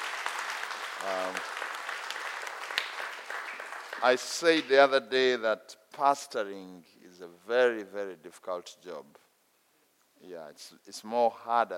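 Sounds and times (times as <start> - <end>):
audience applause: 0.0 - 4.7
speech: 1.0 - 1.6, 4.0 - 9.2, 10.2 - 11.7.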